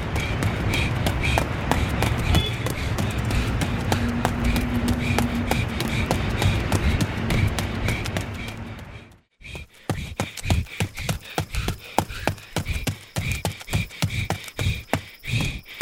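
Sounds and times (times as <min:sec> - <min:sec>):
steady rumbling noise: 0:00.0 - 0:09.2
running footsteps of a man running away from police: 0:00.0 - 0:15.8.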